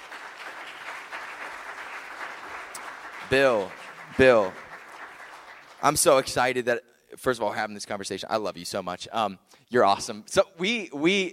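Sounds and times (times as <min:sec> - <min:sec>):
audience applause welcoming a guest to the stage: 0:00.0 - 0:06.2
speech: 0:03.3 - 0:04.6, 0:05.8 - 0:11.3.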